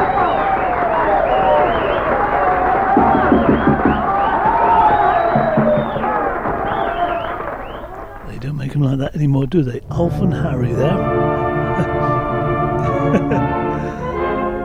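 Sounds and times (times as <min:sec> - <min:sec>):
people cheering and whooping: 0:00.0 - 0:08.4, 0:11.4 - 0:14.0
crowd applauding: 0:00.0 - 0:08.7, 0:10.8 - 0:14.2
speech: 0:09.0 - 0:11.9
laughter: 0:10.0 - 0:14.2.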